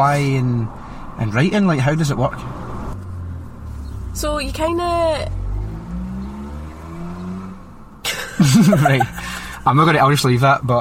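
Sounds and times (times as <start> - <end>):
speech: 0.0 - 2.6, 4.2 - 5.4, 8.4 - 10.7
cars passing by outside a parked car: 0.0 - 10.7
laughter: 8.1 - 9.7.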